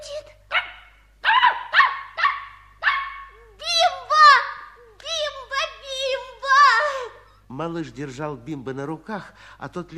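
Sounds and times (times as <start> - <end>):
small dog yapping: 0.5 - 4.7
speech: 7.6 - 9.9.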